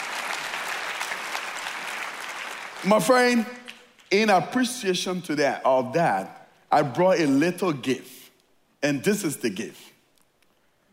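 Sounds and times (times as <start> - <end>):
audience applause: 0.0 - 3.8
speech: 2.8 - 8.2, 8.8 - 9.9.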